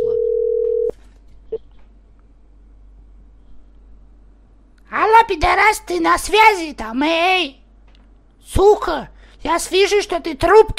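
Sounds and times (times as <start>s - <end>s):
telephone line tone while a number is called: 0.0s - 0.9s
speech: 5.3s - 7.6s, 8.5s - 10.7s.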